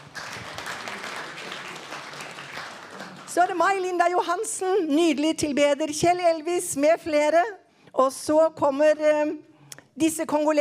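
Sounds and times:
audience applause: 0:00.0 - 0:03.5
speech: 0:03.4 - 0:10.5.

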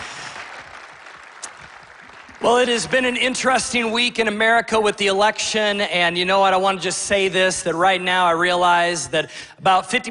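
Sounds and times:
audience applause: 0:00.0 - 0:03.3
speech: 0:02.4 - 0:10.0.

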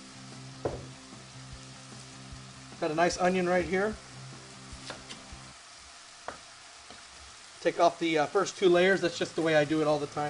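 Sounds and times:
olive oil sizzling in a frying pan while food browns: 0:00.0 - 0:10.2
speech: 0:02.8 - 0:04.0, 0:07.6 - 0:10.2.

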